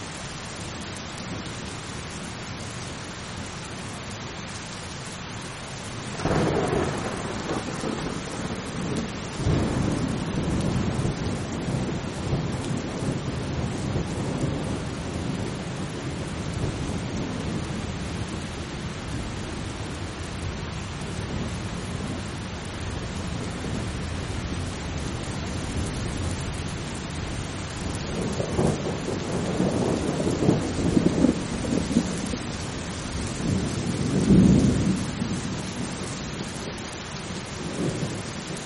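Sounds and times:
steady rain: 0:00.0 - 0:38.6
thunder rumbling: 0:06.1 - 0:22.3, 0:22.9 - 0:36.1.

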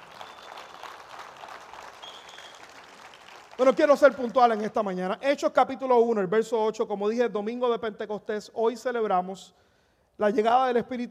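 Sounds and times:
audience applauding: 0:00.0 - 0:04.6
speech: 0:03.6 - 0:09.6, 0:10.2 - 0:11.0.

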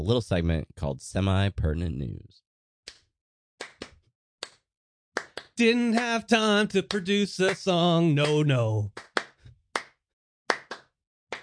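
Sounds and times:
speech: 0:00.0 - 0:02.4, 0:05.6 - 0:09.1
hand claps: 0:02.9 - 0:04.6, 0:05.2 - 0:11.4.

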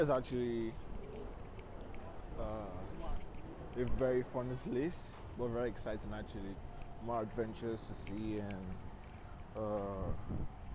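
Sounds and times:
speech: 0:00.0 - 0:00.9, 0:02.4 - 0:08.9, 0:09.5 - 0:10.6
street noise during a walk: 0:00.0 - 0:10.7.

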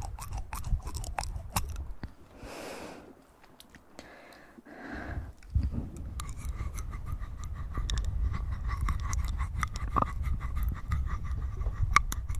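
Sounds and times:
wet mouth clicks and chewing-like crunches: 0:00.0 - 0:02.2, 0:05.4 - 0:12.3
breathy exhale: 0:02.3 - 0:03.2, 0:04.0 - 0:05.4
steady low rumble: 0:05.1 - 0:12.0.

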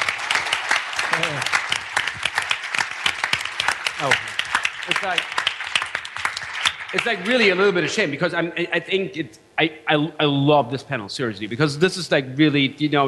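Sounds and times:
audience applause: 0:00.0 - 0:07.8
speech: 0:04.0 - 0:04.3, 0:05.0 - 0:05.4, 0:06.9 - 0:13.0.

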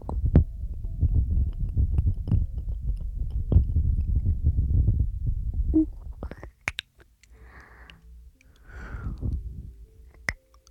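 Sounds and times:
dense low rumbling air noise: 0:00.0 - 0:06.3, 0:08.7 - 0:09.9
soft airy breaths: 0:07.3 - 0:09.7.

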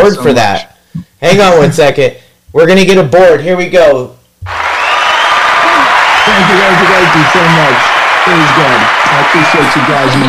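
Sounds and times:
speech: 0:00.0 - 0:04.6, 0:06.3 - 0:10.2
round of applause: 0:04.5 - 0:10.2.

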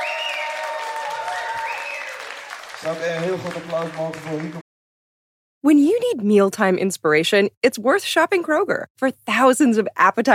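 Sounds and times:
audience applause: 0:00.0 - 0:04.6
speech: 0:02.8 - 0:04.6, 0:05.7 - 0:10.3.

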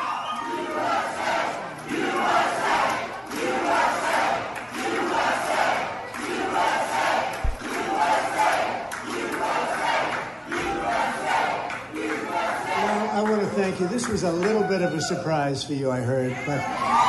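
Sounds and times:
large crowd chanting USA: 0:00.0 - 0:13.4
speech: 0:13.9 - 0:17.0.

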